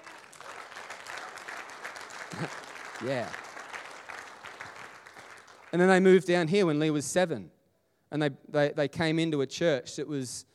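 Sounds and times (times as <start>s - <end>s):
audience cheering and applauding: 0.0s - 6.0s
speech: 2.3s - 3.4s, 5.7s - 10.5s.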